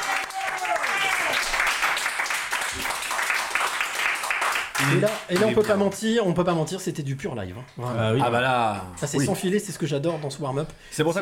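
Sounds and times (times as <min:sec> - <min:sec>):
audience applause: 0:00.0 - 0:05.8
speech: 0:04.8 - 0:11.2.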